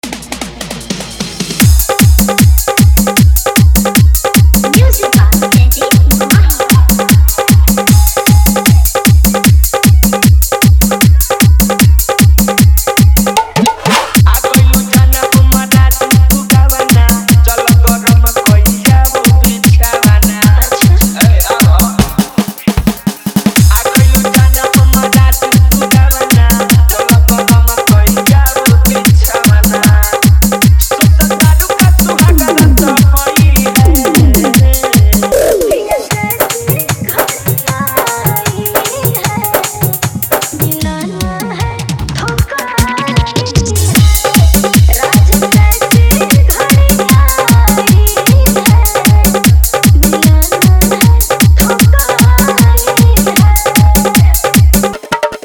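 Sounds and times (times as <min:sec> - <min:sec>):
Bhojpuri DJ song with hard dholak and bass: 0:00.0 - 0:55.4.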